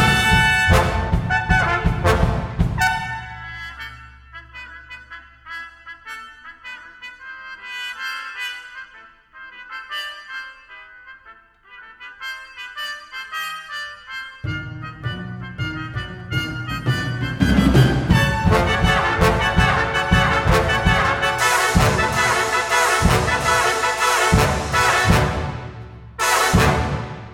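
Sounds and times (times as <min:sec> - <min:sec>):
jazz ensemble playing: 0:00.0 - 0:05.2, 0:14.4 - 0:27.3
solo clarinet: 0:02.8 - 0:25.3.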